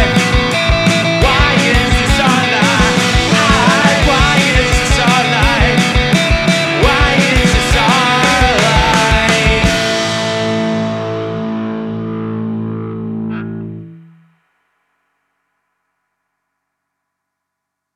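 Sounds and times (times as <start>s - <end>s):
music track at 171 bpm: 0.0s - 14.4s.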